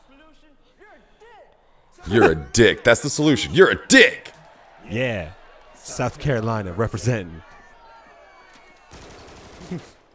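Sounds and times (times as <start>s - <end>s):
speech: 0.2s - 7.5s, 9.7s - 9.9s
laughter: 2.0s - 4.4s, 9.5s - 10.0s
belt-fed machine gun burst: 8.9s - 9.9s.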